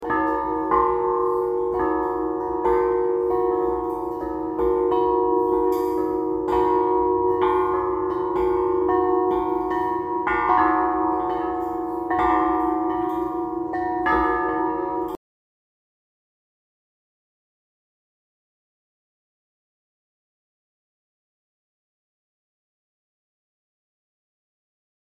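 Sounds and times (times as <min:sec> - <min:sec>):
bells ringing: 0:00.0 - 0:15.2.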